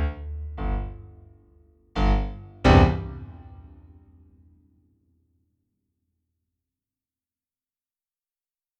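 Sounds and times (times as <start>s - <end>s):
piano: 0.0s - 4.7s.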